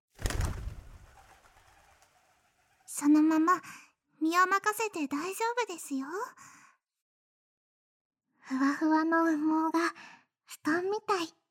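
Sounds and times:
bird wings flapping as it takes flight: 0.1 - 2.9
speech: 3.0 - 6.6, 8.5 - 11.4.

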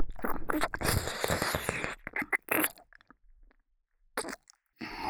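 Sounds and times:
deep ASMR ear licking in left and right ears: 0.1 - 3.1, 4.2 - 4.5.

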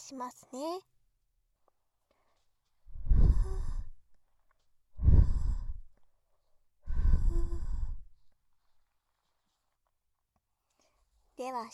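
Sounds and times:
blowing softly into the ear in a Japanese ASMR session: 2.9 - 4.0, 5.0 - 5.9, 6.9 - 8.2.

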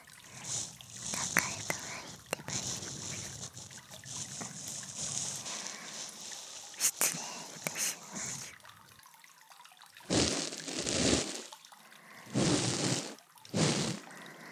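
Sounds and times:
ear cleaning after a bath recorded with a binaural microphone: 0.3 - 8.5, 10.1 - 11.5, 12.3 - 14.1.

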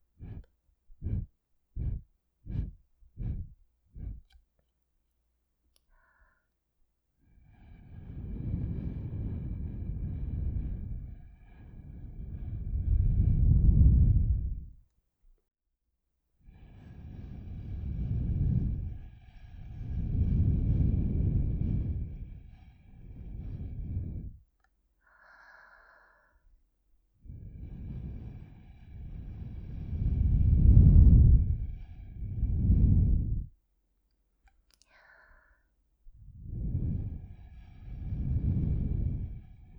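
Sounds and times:
blowing into ears through a straw: 0.0 - 4.4, 7.6 - 14.8, 16.6 - 24.4, 27.3 - 33.5, 36.2 - 39.7.

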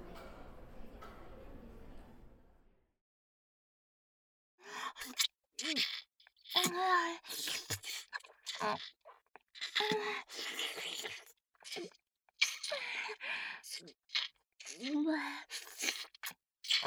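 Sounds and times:
licking of both ears: 5.0 - 12.7, 13.7 - 14.9, 15.5 - 16.8.

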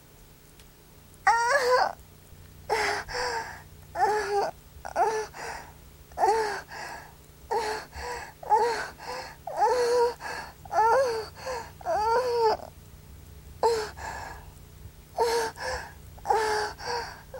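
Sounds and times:
young woman moaning: 1.3 - 2.0, 2.7 - 5.6, 6.2 - 6.8, 7.5 - 12.7, 13.6 - 14.0, 15.2 - 17.3.

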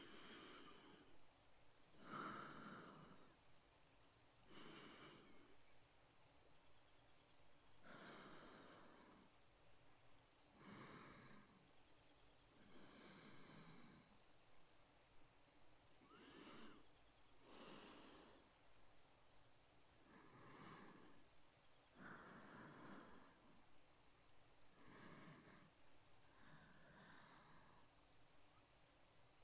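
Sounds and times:
breathing in the right ear: 0.0 - 3.7, 4.4 - 5.8, 7.8 - 9.7, 10.3 - 14.5, 15.6 - 18.9, 19.9 - 28.7.

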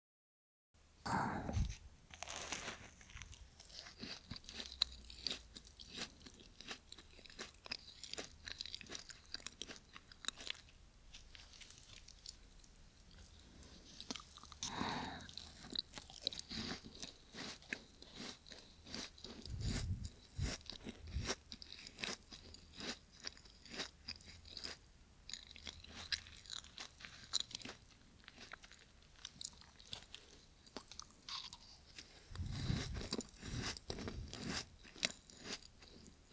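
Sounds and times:
crunching and chewing of a macaron from a popular shop: 1.1 - 36.3.

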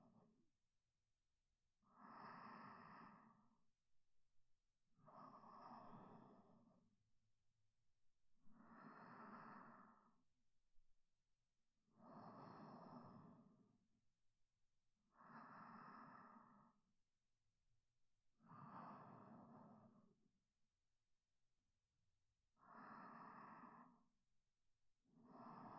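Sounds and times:
sleep breathing: 2.0 - 3.6, 5.1 - 6.7, 8.5 - 10.2, 12.0 - 13.7, 15.2 - 16.8, 18.5 - 20.2, 22.6 - 24.1, 25.2 - 25.7.

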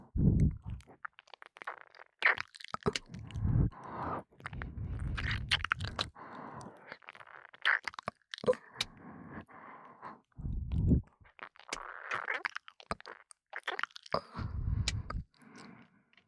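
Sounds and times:
ASMR ear licking: 0.2 - 9.0, 10.3 - 15.7
breathy ASMR breathing in the right ear: 3.2 - 6.8, 8.8 - 11.1, 14.2 - 16.2.

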